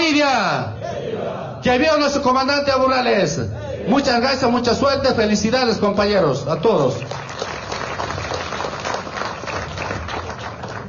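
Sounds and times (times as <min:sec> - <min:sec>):
speech: 0:00.2 - 0:07.5
crowd applauding: 0:06.8 - 0:10.8.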